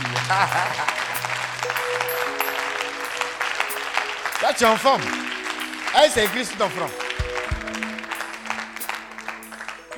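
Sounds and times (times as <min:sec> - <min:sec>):
laughter: 0:00.0 - 0:01.4
applause: 0:00.0 - 0:09.9
speech: 0:00.3 - 0:01.0, 0:04.4 - 0:05.2, 0:06.0 - 0:07.0.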